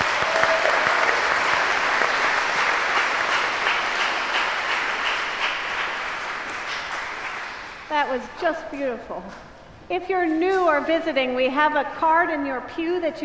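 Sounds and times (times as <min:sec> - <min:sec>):
applause for a church pageant in a cathedral: 0:00.0 - 0:08.0
speech: 0:08.2 - 0:13.2.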